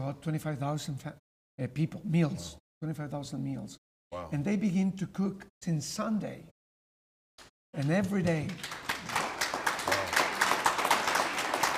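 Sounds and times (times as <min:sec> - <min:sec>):
speech: 0:00.1 - 0:06.6, 0:07.7 - 0:09.2
people clapping: 0:07.8 - 0:11.7.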